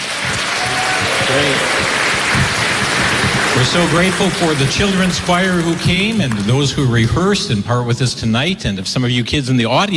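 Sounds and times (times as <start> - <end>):
voices over clapping: 0.0 - 6.5
audience clapping for the church and VCY: 0.0 - 7.5
speech: 1.3 - 2.0, 3.6 - 9.9.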